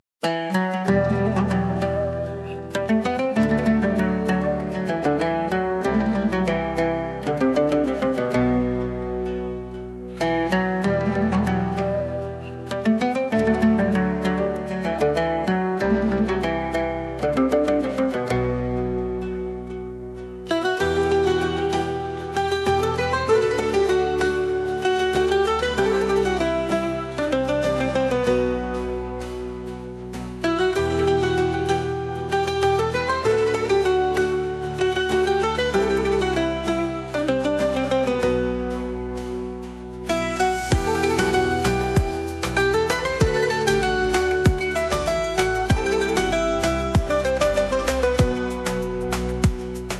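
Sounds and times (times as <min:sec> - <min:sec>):
Asian rhythms: 0:00.2 - 0:49.9.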